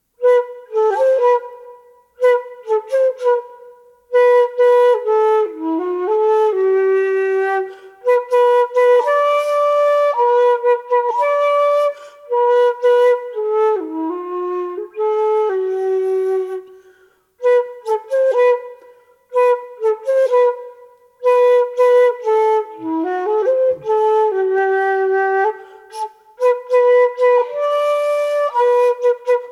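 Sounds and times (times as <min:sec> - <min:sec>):
flute: 0:00.0 - 0:29.5.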